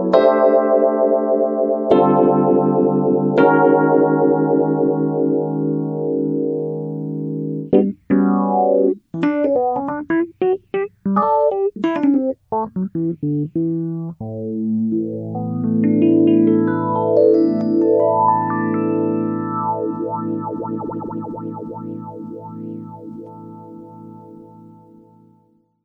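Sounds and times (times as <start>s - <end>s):
Rhodes electric piano through a Small Stone phaser: 0.0s - 25.6s.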